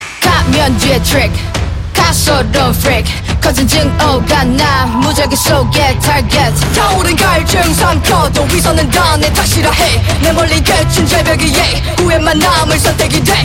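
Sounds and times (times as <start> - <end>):
scream rapping: 0.0 - 13.4.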